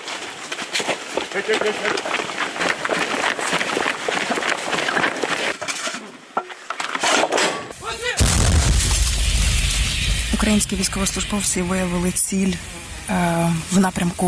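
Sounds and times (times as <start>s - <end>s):
noisy outdoor bustle: 0.0s - 14.2s
speech: 1.3s - 2.3s, 10.4s - 14.2s
artillery cannon firing: 8.2s - 13.8s
indistinct voices: 10.2s - 14.2s.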